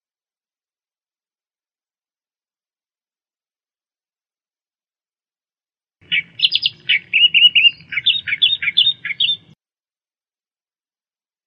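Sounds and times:
Australian reed warbler song: 6.0 - 9.6.

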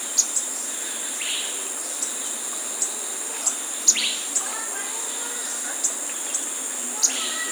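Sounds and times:
brown-rumped flowerpecker calling: 0.2 - 7.5.

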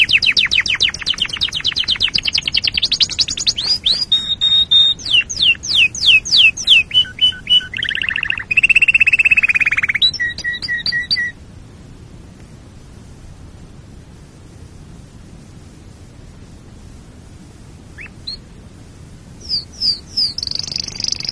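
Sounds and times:
canary song: 0.0 - 11.4, 17.9 - 18.7, 19.3 - 21.3.

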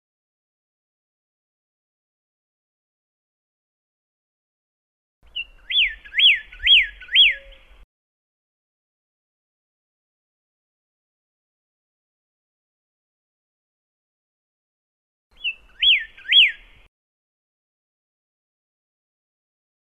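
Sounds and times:
pyrrhuloxia singing thin and slurred whistles: 5.3 - 7.8, 15.3 - 16.8.

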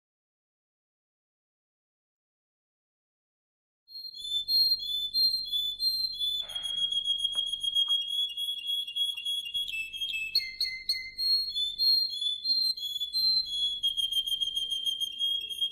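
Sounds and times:
Atlantic canary singing with rolling trills and whistled notes: 3.9 - 15.7.

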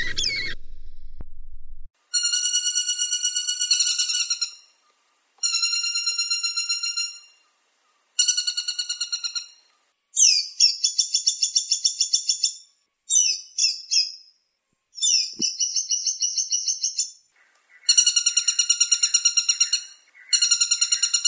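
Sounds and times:
woodpecker calls: 0.0 - 0.6, 2.2 - 14.1, 15.0 - 21.2.

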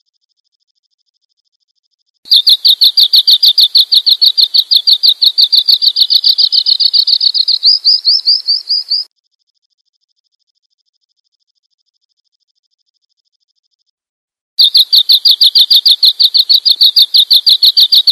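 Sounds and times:
bird chirping: 2.3 - 9.1, 14.6 - 18.1.

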